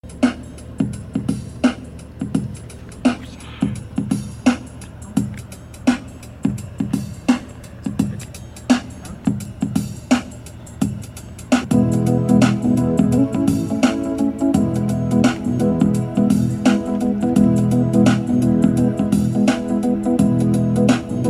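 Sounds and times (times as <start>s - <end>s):
rap music: 0.0s - 21.2s.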